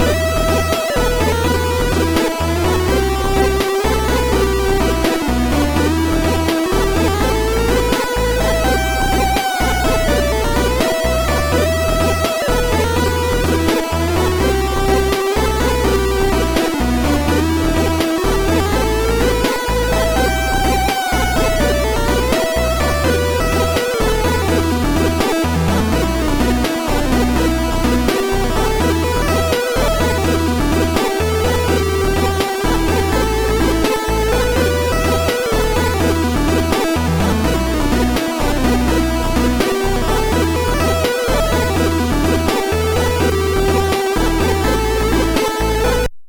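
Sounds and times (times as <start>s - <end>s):
chiptune music: 0.0s - 46.1s.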